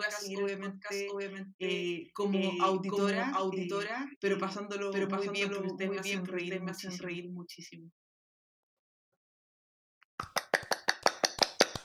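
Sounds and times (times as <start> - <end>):
speech: 0.3 - 8.1
hands clapping: 10.2 - 11.8.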